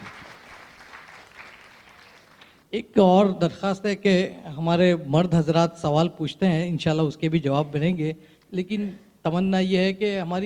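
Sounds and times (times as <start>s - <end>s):
faint audience applause welcoming the city mayor at a religious gathering: 0.0s - 2.6s
speech: 2.7s - 10.4s.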